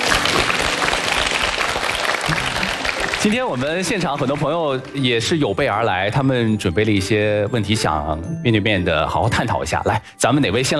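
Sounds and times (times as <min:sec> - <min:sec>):
audience applause: 0:00.0 - 0:05.3
speech: 0:03.2 - 0:10.7.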